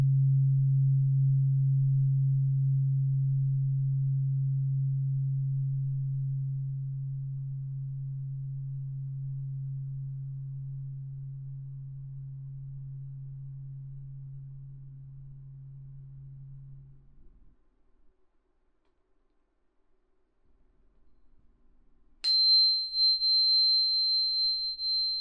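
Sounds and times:
tuning fork humming a low steady tone: 0:00.0 - 0:17.6, 0:22.2 - 0:25.2
high pure tuning fork tone: 0:22.2 - 0:25.2.

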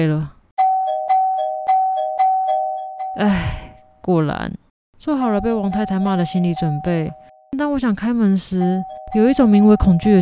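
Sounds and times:
speech: 0:00.0 - 0:00.4, 0:03.2 - 0:10.2
two-tone doorbell ringing: 0:00.6 - 0:03.3, 0:05.2 - 0:07.8, 0:08.6 - 0:10.2.

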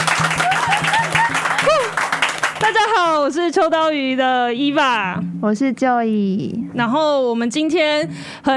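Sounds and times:
live audience clapping: 0:00.0 - 0:03.2
speech: 0:02.6 - 0:08.5.

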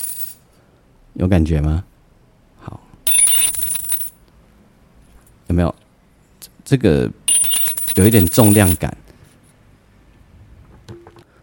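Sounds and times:
coins dropping: 0:00.0 - 0:00.4, 0:03.1 - 0:04.2, 0:07.3 - 0:08.8
speech: 0:01.2 - 0:01.9, 0:05.5 - 0:05.8, 0:06.7 - 0:07.2, 0:08.0 - 0:09.0.

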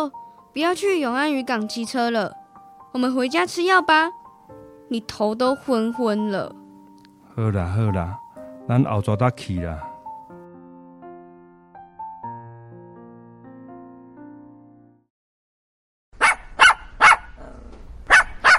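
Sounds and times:
speech: 0:00.0 - 0:06.6, 0:07.4 - 0:09.9
dog barking: 0:16.2 - 0:18.5.

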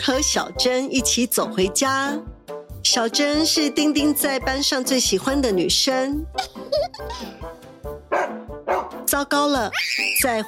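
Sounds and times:
speech: 0:00.0 - 0:07.4, 0:09.2 - 0:10.4
large dog barking loudly: 0:08.1 - 0:09.0.

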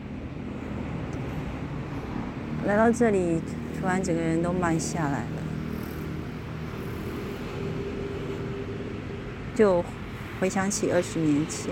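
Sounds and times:
road traffic beside a small park: 0:00.0 - 0:11.7
speech: 0:02.6 - 0:05.4, 0:09.6 - 0:11.7.

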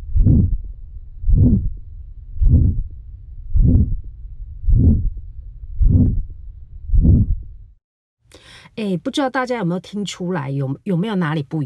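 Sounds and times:
abnormal heartbeat with a murmur: 0:00.0 - 0:00.6, 0:01.3 - 0:01.8, 0:02.4 - 0:02.9, 0:03.5 - 0:05.2, 0:05.8 - 0:07.6
speech: 0:08.8 - 0:11.6.

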